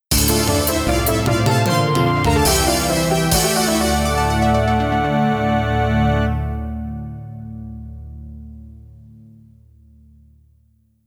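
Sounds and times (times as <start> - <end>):
MIDI game music on Roland CM-64: 0.1 - 7.4.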